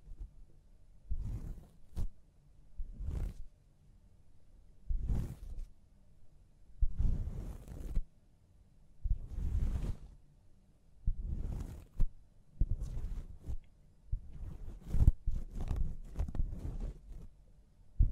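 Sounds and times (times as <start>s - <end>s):
scalp massage and hair wash rubbing and scrunching strokes: 1.1s - 2.2s, 2.8s - 3.5s, 4.8s - 5.8s, 6.8s - 8.1s, 9.0s - 10.2s, 11.0s - 17.4s.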